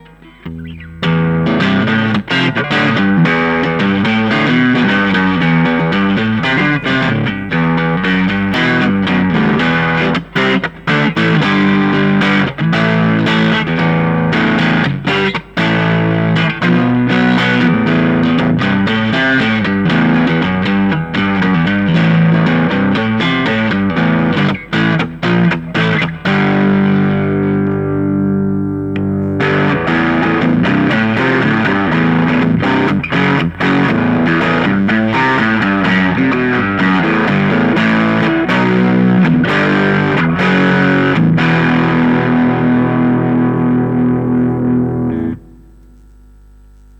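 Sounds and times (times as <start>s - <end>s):
overdrive distortion: 0.0s - 46.9s.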